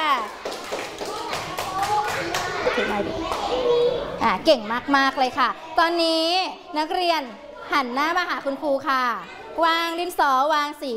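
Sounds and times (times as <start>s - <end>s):
children clapping applause: 0.0s - 3.8s
speech: 2.8s - 10.9s.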